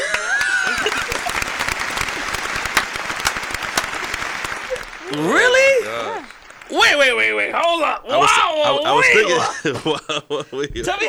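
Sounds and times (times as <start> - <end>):
audience applause: 0.0 - 9.8
laughter: 0.0 - 11.0
speech: 5.1 - 5.6, 6.8 - 11.0.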